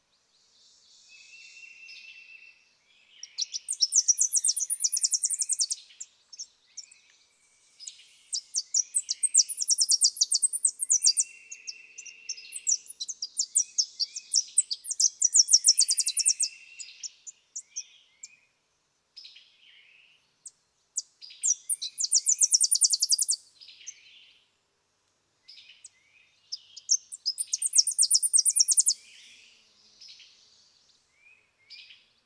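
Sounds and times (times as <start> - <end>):
Tennessee warbler singing: 0.7 - 18.5, 20.4 - 24.4, 25.5 - 32.2.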